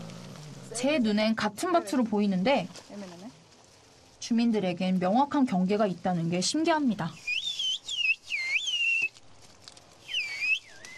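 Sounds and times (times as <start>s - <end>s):
speech: 0.7s - 3.2s, 4.3s - 7.2s
woman whistling a call across fields: 7.2s - 9.1s, 10.1s - 10.9s.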